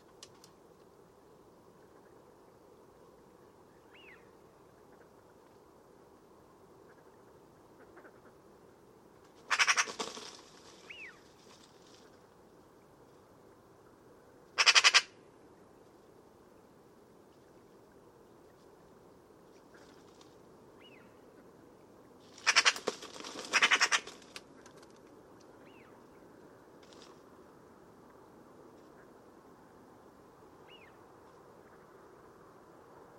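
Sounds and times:
bird calling grating squawks: 9.5 - 9.9, 14.6 - 15.1, 22.4 - 22.8, 23.5 - 24.1.

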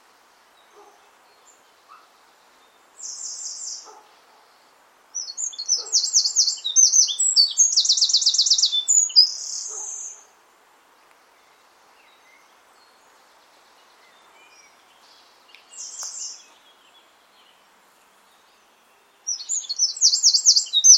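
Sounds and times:
bird chirping and trilling: 5.2 - 10.2, 19.3 - 20.9.

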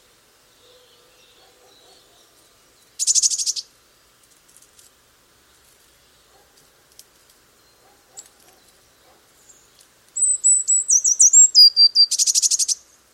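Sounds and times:
Eurasian blue tit song: 0.5 - 3.7, 7.5 - 13.0.

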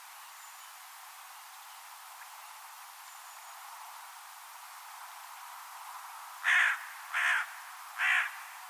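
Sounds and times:
bird cawing: 6.4 - 8.6.

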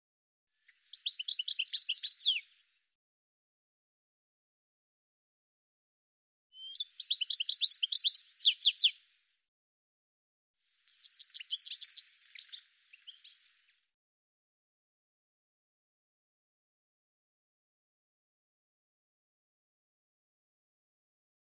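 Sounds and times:
bird chirping: 0.6 - 2.8, 6.5 - 9.0, 10.8 - 13.9.

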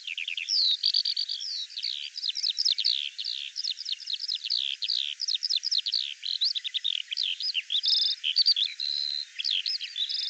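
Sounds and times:
bird song: 0.0 - 10.2.

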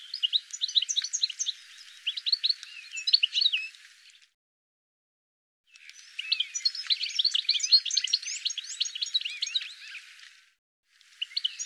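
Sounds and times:
bird giving quick high chirps and short sweeping notes: 0.0 - 3.8, 5.7 - 10.0, 11.2 - 11.6.

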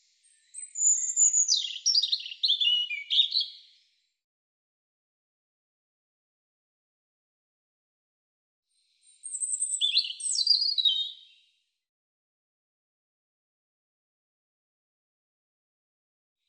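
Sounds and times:
European robin singing high phrases of slurred whistles and trills: 0.0 - 3.8, 9.0 - 11.4.

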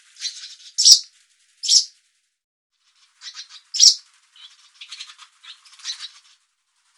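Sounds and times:
bird scratchy rasping chatter: 0.3 - 1.1, 1.7 - 1.9, 3.2 - 6.1.

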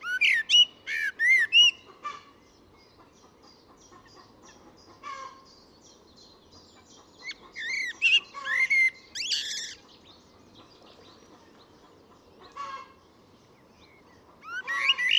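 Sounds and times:
bird giving varied whistled and chattering notes: 0.0 - 1.8, 7.2 - 9.8, 14.4 - 15.1.

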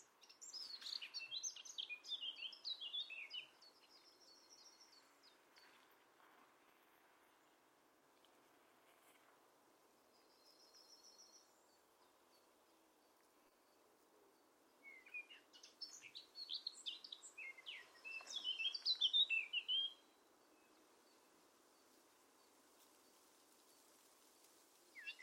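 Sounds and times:
bird singing scratchy chirps and brief whistles: 0.0 - 5.8, 10.1 - 12.5, 14.7 - 21.2, 25.0 - 25.2.

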